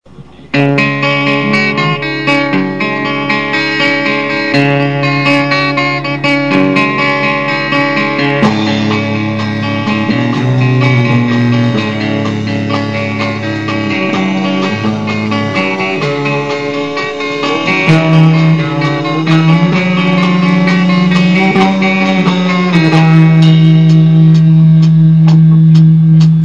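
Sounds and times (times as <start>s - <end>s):
instrumental music: 0.1s - 26.4s.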